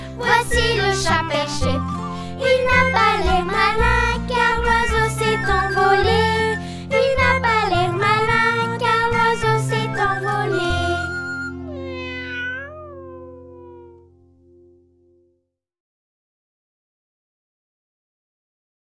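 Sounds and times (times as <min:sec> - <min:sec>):
song: 0:00.0 - 0:13.6.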